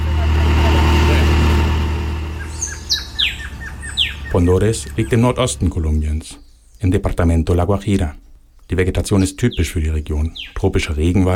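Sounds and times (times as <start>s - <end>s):
vehicle engine noise while driving: 0.0s - 5.8s
speech: 4.3s - 11.3s.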